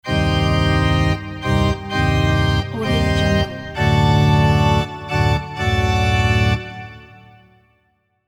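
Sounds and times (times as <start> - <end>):
Halloween organ music: 0.0 - 7.6.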